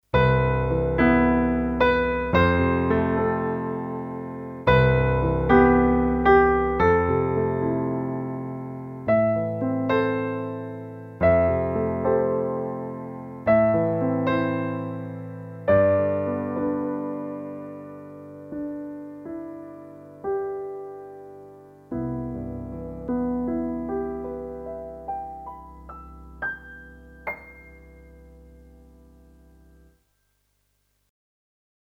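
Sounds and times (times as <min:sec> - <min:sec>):
Alesis Prestige grand piano: 0:00.0 - 0:30.0.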